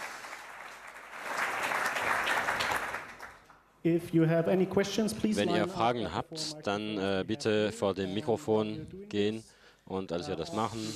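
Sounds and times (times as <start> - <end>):
audience applause: 0.0 - 3.5
speech: 3.8 - 10.9.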